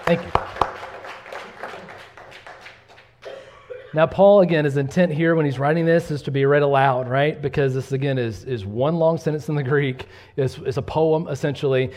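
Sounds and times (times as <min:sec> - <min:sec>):
applause from a church Bible class: 0:00.0 - 0:03.2
speech: 0:00.1 - 0:00.4, 0:03.9 - 0:11.9.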